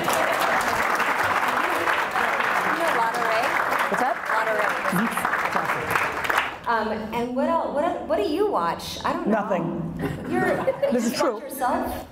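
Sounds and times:
audience applause: 0:00.0 - 0:06.6
speech: 0:06.8 - 0:12.1
laughter: 0:10.0 - 0:11.6.

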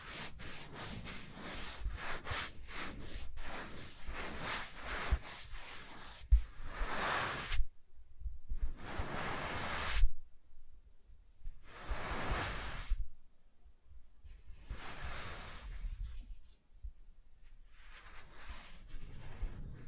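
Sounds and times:
soft tracing over smooth and rough surfaces: 0:00.0 - 0:07.7, 0:08.5 - 0:10.2, 0:11.5 - 0:13.1, 0:14.2 - 0:16.6, 0:17.4 - 0:19.8.

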